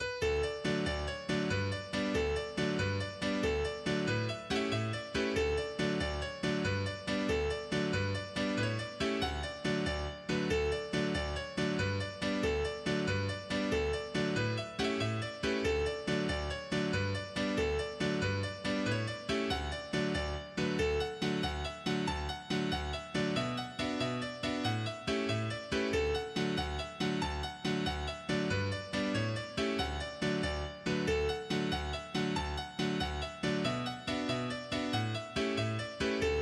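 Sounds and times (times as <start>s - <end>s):
jig melody: 0.0s - 36.3s.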